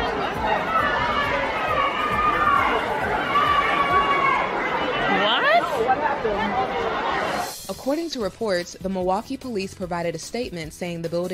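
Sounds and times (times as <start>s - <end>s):
people shouting in concert crowd: 0.0s - 7.5s
crowd commotion at a concert: 0.0s - 8.2s
speech: 7.9s - 11.3s.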